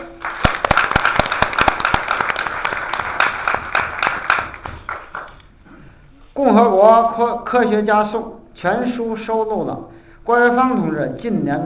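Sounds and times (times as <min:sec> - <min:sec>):
audience applause: 0:00.0 - 0:05.4
speech: 0:06.4 - 0:11.6.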